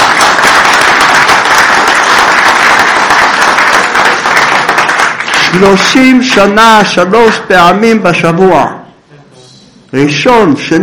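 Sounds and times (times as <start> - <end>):
audience applauding: 0.0 - 6.9
speech: 5.5 - 8.8, 9.9 - 10.8.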